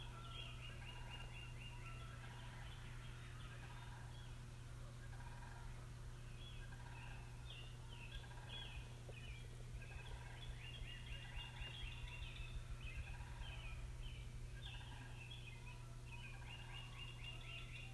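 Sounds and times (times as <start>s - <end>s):
morning birds singing: 0.0s - 17.9s.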